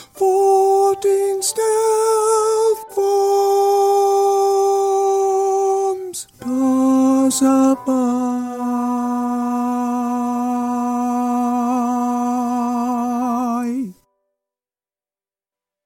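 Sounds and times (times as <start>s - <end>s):
alto voice singing in G minor: 0.0s - 14.0s.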